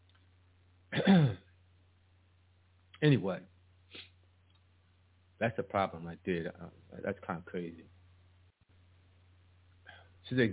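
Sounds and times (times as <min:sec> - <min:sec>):
person coughing after choking: 0:00.9 - 0:01.5
speech: 0:03.0 - 0:03.5, 0:05.4 - 0:08.0, 0:10.3 - 0:10.5.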